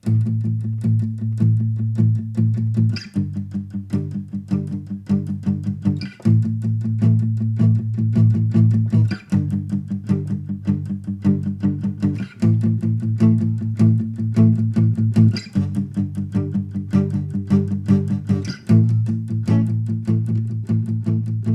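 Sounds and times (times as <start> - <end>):
instrumental music: 0.0 - 21.5.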